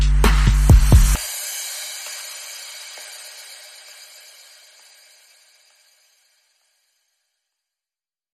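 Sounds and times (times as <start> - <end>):
bass: 0.0 - 1.2
chill break drums: 0.0 - 5.0.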